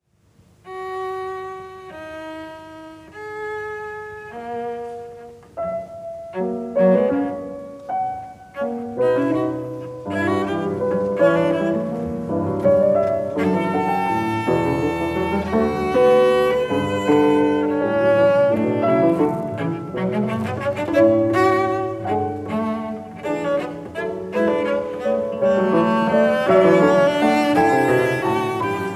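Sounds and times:
cello sonata movement: 0.2s - 28.9s.

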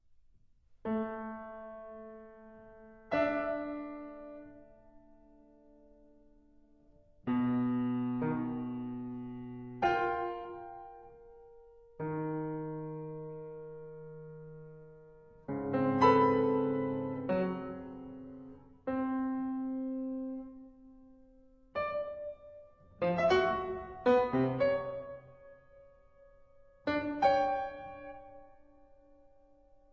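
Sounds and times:
piano sonata: 0.8s - 29.9s.

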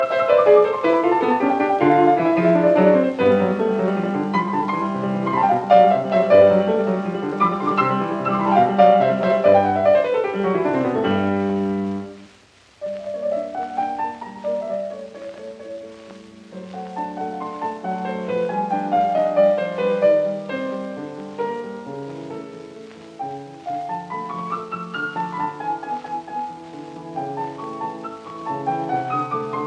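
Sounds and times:
piano sonata: 0.0s - 29.6s.

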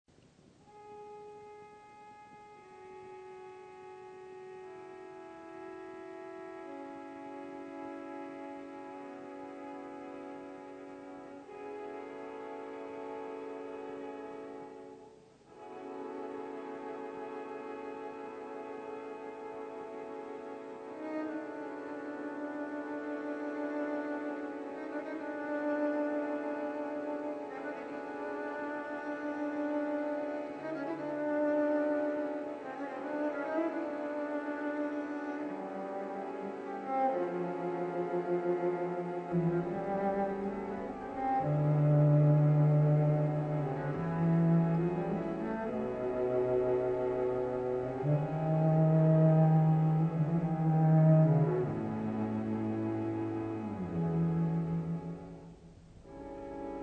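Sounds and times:
string quartet: 0.3s - 56.8s.

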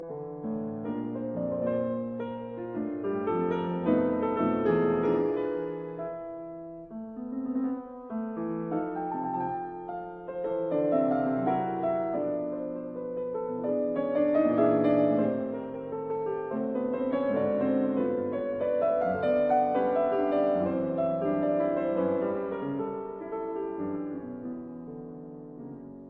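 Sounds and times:
piano mazurka in B minor: 0.0s - 26.0s.

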